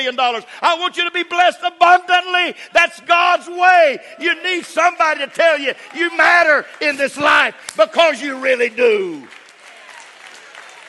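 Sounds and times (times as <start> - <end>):
speech: 0.0 - 9.4
audience clapping hands: 4.5 - 10.8.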